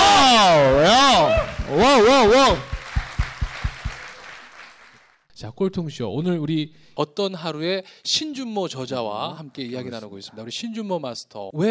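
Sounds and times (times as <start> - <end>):
audience applause: 0.0 - 5.2
strong claps: 0.0 - 5.3
speech: 1.9 - 2.7, 5.4 - 11.6.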